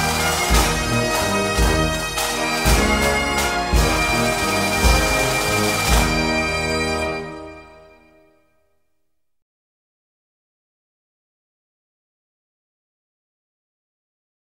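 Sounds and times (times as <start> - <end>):
national anthem music: 0.0 - 8.7.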